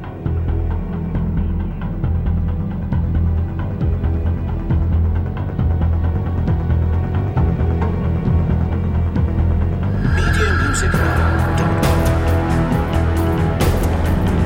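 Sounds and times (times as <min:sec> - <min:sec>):
dramatic music cue: 0:00.2 - 0:14.4.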